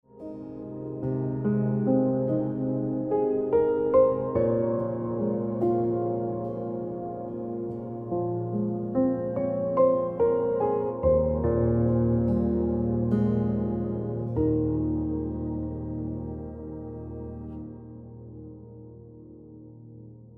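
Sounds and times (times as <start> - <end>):
piano music: 0.0 - 20.3.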